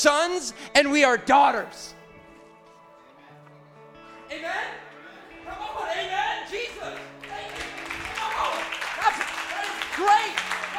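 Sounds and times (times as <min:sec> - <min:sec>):
speech: 0:00.0 - 0:02.0
crowd clapping: 0:06.5 - 0:10.7.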